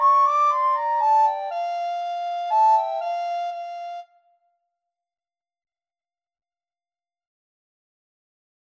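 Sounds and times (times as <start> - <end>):
recorder trio playing a minuet: 0.0 - 4.0.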